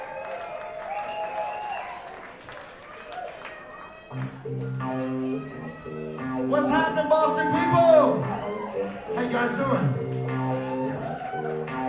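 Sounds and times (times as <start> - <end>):
audience at a Boston show applauding and cheering a band: 0.0 - 11.8
music: 4.1 - 11.8
speech: 4.2 - 5.2, 9.1 - 10.0.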